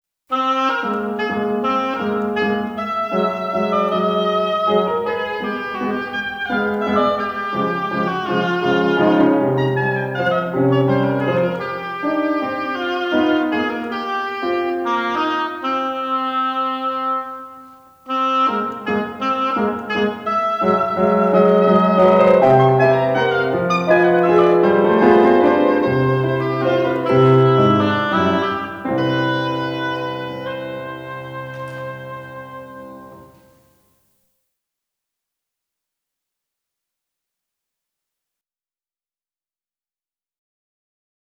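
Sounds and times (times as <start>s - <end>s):
oboe and piano waltz: 0.3s - 33.8s.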